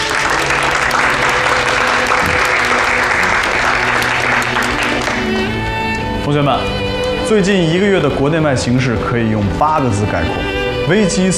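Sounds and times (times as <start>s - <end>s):
audience applause: 0.0s - 5.7s
speech: 6.3s - 11.3s.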